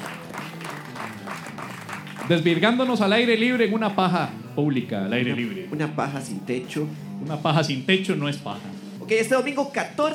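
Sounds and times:
audience applause: 0.0s - 3.0s
speech: 2.3s - 10.1s.

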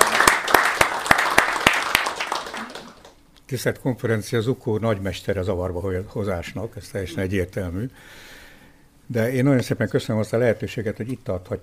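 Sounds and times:
audience applause at a conference honouring a speaker: 0.0s - 3.2s
speech: 3.5s - 8.4s, 9.1s - 11.6s.

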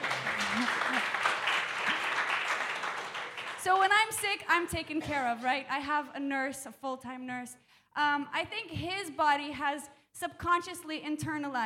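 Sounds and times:
round of applause: 0.0s - 4.2s
speech: 3.6s - 11.6s.

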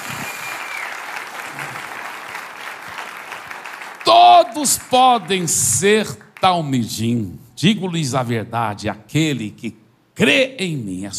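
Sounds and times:
audience round of applause: 0.0s - 5.8s
speech: 4.5s - 11.1s.

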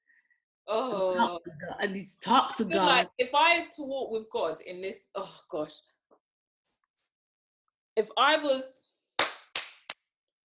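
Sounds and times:
speech: 0.7s - 5.9s, 8.0s - 8.8s
sharp hand claps: 9.2s - 10.1s.

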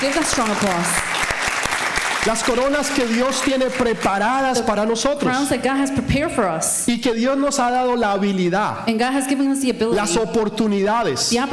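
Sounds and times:
speech: 0.0s - 1.1s, 2.2s - 11.5s
audience applause: 0.0s - 4.4s.

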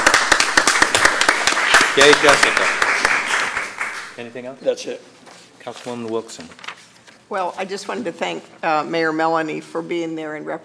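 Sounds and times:
crowd clapping: 0.0s - 4.2s
speech: 2.0s - 2.8s, 4.2s - 6.7s, 7.3s - 10.6s.

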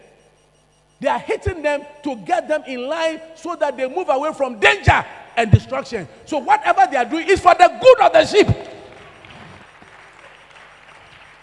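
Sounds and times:
speech: 1.0s - 8.6s
audience clapping: 8.6s - 11.4s.

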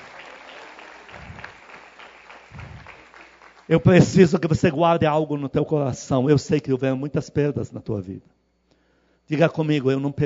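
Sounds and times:
audience applauding: 0.0s - 4.1s
speech: 3.7s - 8.4s, 9.3s - 10.2s.

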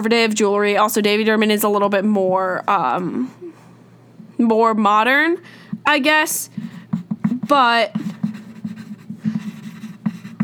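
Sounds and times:
speech: 0.0s - 3.4s, 4.4s - 6.7s, 7.5s - 8.2s
low steady hum: 0.0s - 10.4s
pen strokes scratching on paper while writing: 6.6s - 10.4s.

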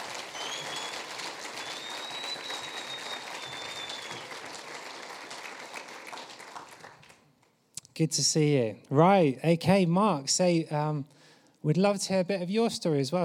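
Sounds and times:
audience applause welcoming a speaker onto the stage: 0.0s - 7.2s
speech: 8.0s - 13.2s.

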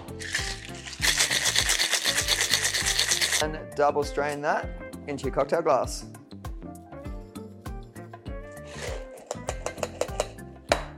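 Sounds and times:
cocktail shaker shaken hard with ice: 0.0s - 3.4s
music: 0.0s - 10.9s
speech: 3.4s - 6.2s.

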